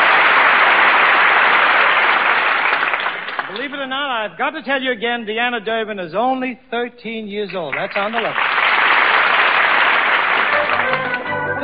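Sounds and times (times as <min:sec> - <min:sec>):
crowd cheering: 0:00.0 - 0:03.7, 0:07.7 - 0:11.6
speech: 0:04.2 - 0:08.6
band playing: 0:10.2 - 0:11.6.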